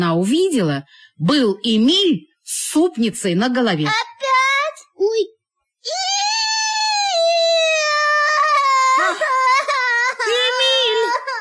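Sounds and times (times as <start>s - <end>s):
speech: 0.0s - 4.1s, 5.0s - 6.1s
young girl crying loudly: 5.9s - 11.3s.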